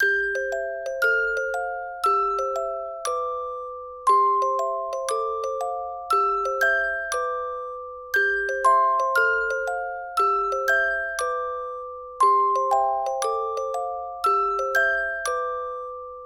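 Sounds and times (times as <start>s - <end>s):
Christmas music loop: 0.0s - 16.2s.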